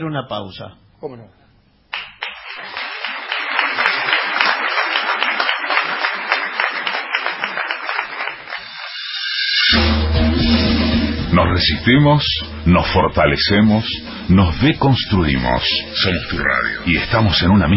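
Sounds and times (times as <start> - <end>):
speech: 0.0 - 1.4, 11.4 - 17.7
crowd applauding: 1.9 - 9.1
low music: 9.7 - 17.7.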